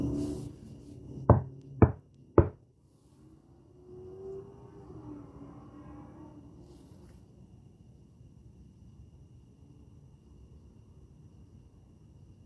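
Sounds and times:
knocking: 0:01.3 - 0:02.6.

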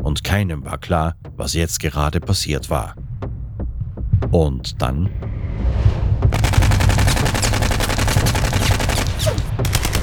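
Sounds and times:
speech: 0:00.1 - 0:03.0, 0:04.3 - 0:05.8
machine gun firing: 0:06.3 - 0:10.0.

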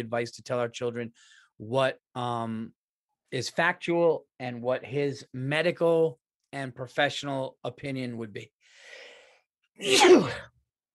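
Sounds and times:
speech: 0:00.0 - 0:09.0, 0:09.8 - 0:10.5
person sneezing: 0:09.8 - 0:10.5.

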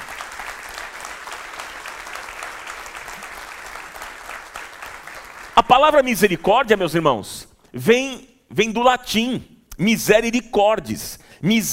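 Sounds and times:
crowd clapping: 0:00.0 - 0:06.4
speech: 0:05.7 - 0:11.7.

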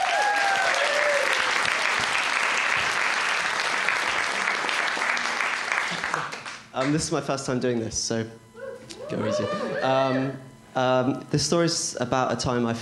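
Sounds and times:
people whooping: 0:00.0 - 0:02.0, 0:08.6 - 0:10.4
audience applause: 0:00.0 - 0:07.0
speech: 0:06.8 - 0:08.4, 0:09.1 - 0:12.8.

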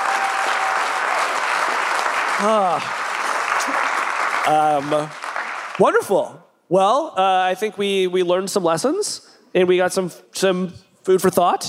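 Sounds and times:
vocal whoops: 0:00.0 - 0:01.0
audience round of applause: 0:00.0 - 0:06.0
speech: 0:02.4 - 0:03.0, 0:03.6 - 0:05.2, 0:05.8 - 0:11.6.

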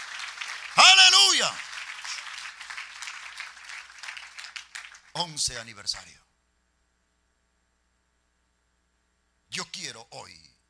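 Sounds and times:
audience applause: 0:00.0 - 0:05.2
speech: 0:01.0 - 0:01.7, 0:05.2 - 0:06.3, 0:09.6 - 0:10.5.

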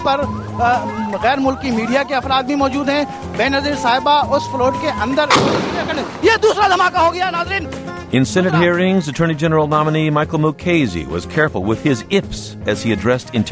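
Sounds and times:
agitated crowd voices: 0:00.0 - 0:07.5
speech: 0:00.0 - 0:13.5
bomb blast: 0:05.3 - 0:06.8.

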